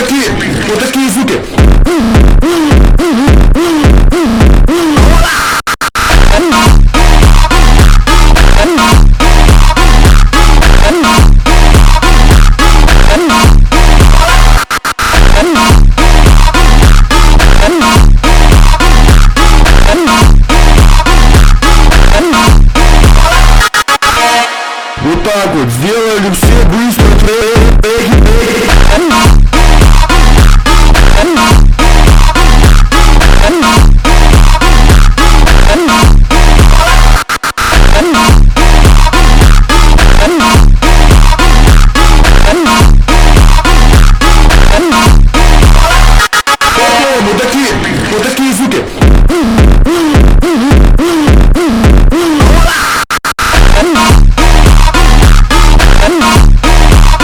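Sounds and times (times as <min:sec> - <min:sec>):
slowed funk music: 0:00.1 - 0:05.3, 0:06.0 - 0:24.3, 0:24.9 - 0:52.8, 0:53.4 - 0:57.2.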